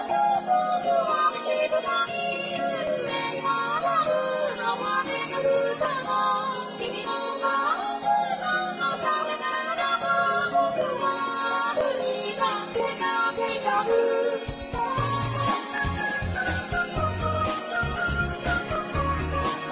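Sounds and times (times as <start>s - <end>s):
electro music: 0.1s - 19.7s.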